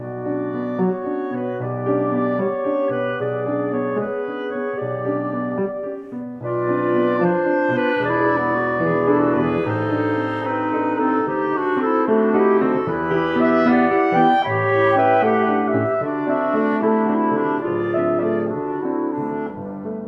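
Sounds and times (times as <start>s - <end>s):
musical trio: 0.0s - 20.0s.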